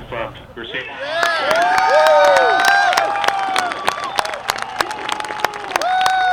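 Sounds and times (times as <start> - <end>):
speech: 0.3 - 1.2
crowd cheering and applauding at touchdown: 1.0 - 6.3.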